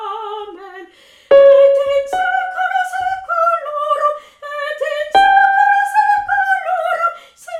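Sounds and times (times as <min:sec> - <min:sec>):
soprano singing: 0:01.3 - 0:03.6, 0:05.1 - 0:07.2.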